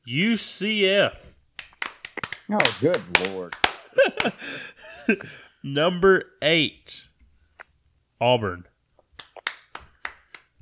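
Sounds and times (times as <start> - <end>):
speech: 0.1 - 1.3, 2.5 - 7.1, 8.2 - 8.7
a few people clapping sparsely: 1.6 - 4.4, 9.1 - 10.6
laughter: 3.7 - 5.4.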